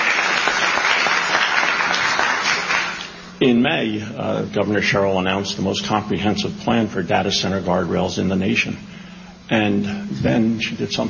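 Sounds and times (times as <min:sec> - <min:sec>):
audience applause: 0:00.0 - 0:03.1
speech: 0:03.4 - 0:11.0.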